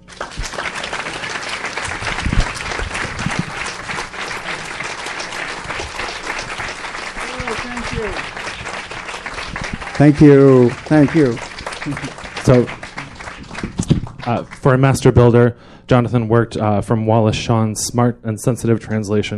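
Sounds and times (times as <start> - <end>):
audience applause welcoming director Jonathan Demme: 0.0 - 14.7
speech: 10.0 - 12.8, 14.3 - 19.3.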